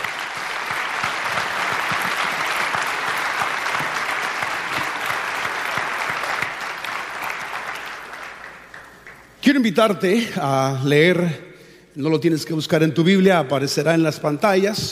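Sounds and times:
audience applause: 0:00.0 - 0:09.3
speech: 0:09.5 - 0:14.8.

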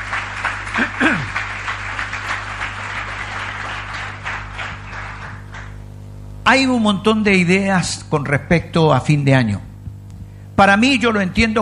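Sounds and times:
applause: 0:00.0 - 0:05.9
speech: 0:06.5 - 0:09.7, 0:10.6 - 0:11.6.

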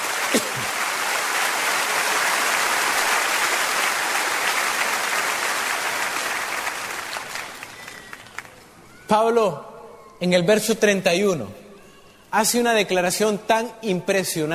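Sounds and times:
audience applauding: 0:00.0 - 0:08.8
speech: 0:00.3 - 0:00.8, 0:09.1 - 0:11.6, 0:12.3 - 0:14.5.

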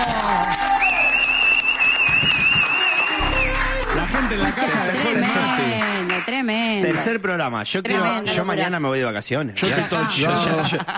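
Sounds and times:
audience applause: 0:00.0 - 0:07.1
speech: 0:04.4 - 0:10.9
laughter: 0:09.6 - 0:10.9.

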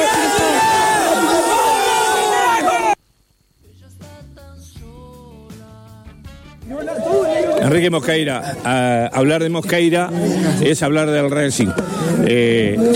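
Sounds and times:
football fans shouting club chant: 0:00.0 - 0:03.0, 0:06.6 - 0:08.6
speech: 0:07.8 - 0:12.9.

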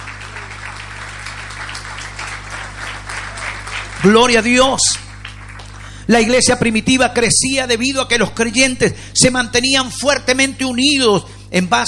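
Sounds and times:
audience applause: 0:00.0 - 0:06.3
speech: 0:04.0 - 0:05.0, 0:06.1 - 0:11.8.

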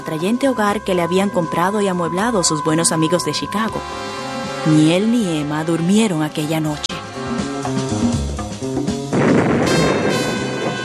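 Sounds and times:
dramatic music: 0:00.0 - 0:10.8
speech: 0:00.1 - 0:06.9.

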